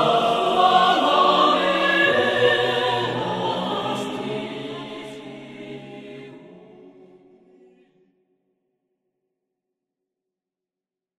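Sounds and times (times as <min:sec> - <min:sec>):
a cappella singing: 0:00.0 - 0:08.0.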